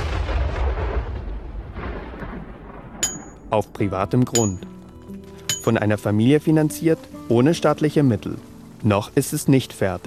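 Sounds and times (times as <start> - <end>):
explosive blasting of rock to carve a monument in South Dakota's Black Hills: 0.0 - 4.0
speech: 3.5 - 4.7, 5.6 - 10.0.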